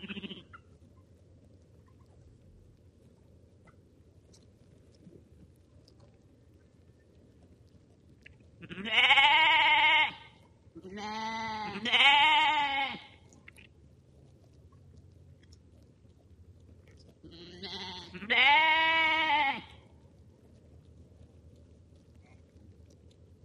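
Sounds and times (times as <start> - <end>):
sheep bleating: 0.0 - 0.6, 8.6 - 13.2, 17.3 - 19.8.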